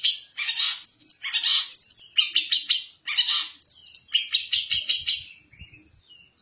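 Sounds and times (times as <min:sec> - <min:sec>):
long-tailed shrike song of harsh chattering notes and rasping calls: 0:00.1 - 0:02.3, 0:03.1 - 0:05.0.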